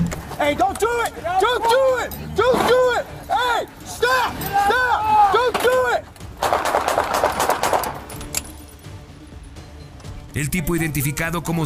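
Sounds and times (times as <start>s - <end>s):
speech: 0.4s - 6.1s, 10.4s - 11.6s
police gunfire: 6.4s - 8.1s.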